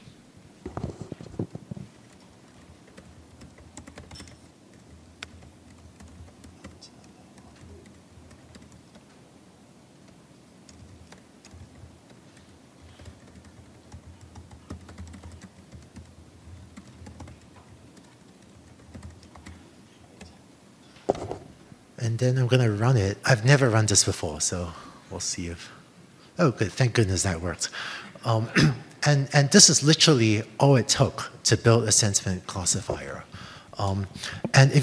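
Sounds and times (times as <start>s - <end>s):
typing on a computer keyboard: 0.7s - 9.2s, 10.0s - 19.6s
speech: 22.0s - 25.8s, 26.4s - 34.8s.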